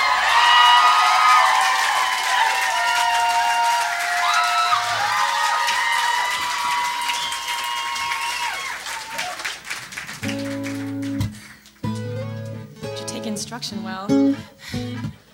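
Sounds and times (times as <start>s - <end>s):
audience applause: 0.0s - 11.8s
speech: 13.6s - 15.2s.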